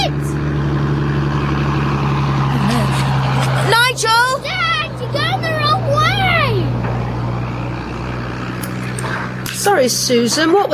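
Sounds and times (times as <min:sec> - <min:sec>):
car engine drone while reversing past a shop: 0:00.0 - 0:10.7
speech: 0:09.8 - 0:10.7.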